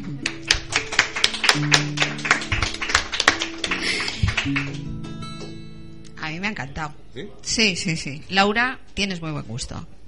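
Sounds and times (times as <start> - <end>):
audience applause: 0.2 - 5.0
speech: 1.6 - 1.8, 4.4 - 4.6, 6.6 - 10.0.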